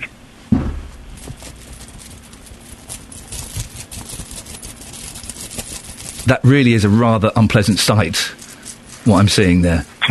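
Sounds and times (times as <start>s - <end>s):
soft thump: 0.5s - 1.4s
coins jingling in a pocket: 1.2s - 6.3s, 8.4s - 9.5s
speech: 6.3s - 8.4s, 9.0s - 10.0s.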